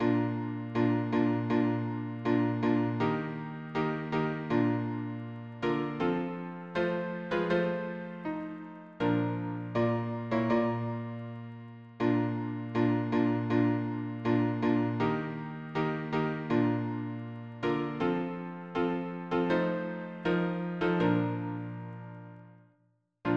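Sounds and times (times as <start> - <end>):
piano harmony: 0.0 - 22.6.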